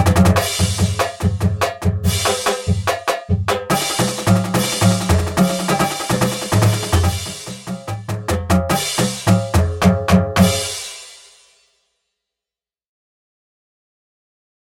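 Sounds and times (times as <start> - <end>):
drums: 0.0 - 11.7.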